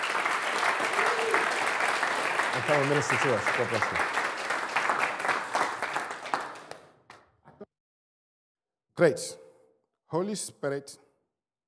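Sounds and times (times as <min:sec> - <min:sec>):
audience applause: 0:00.0 - 0:07.0
speech: 0:02.6 - 0:04.2, 0:09.0 - 0:09.4, 0:10.1 - 0:11.0.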